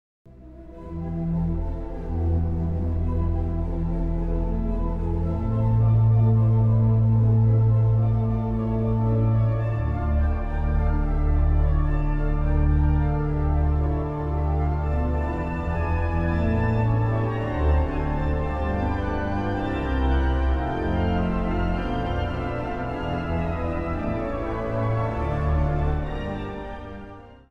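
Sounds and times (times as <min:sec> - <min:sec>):
organ intermezzo: 0:00.6 - 0:27.3.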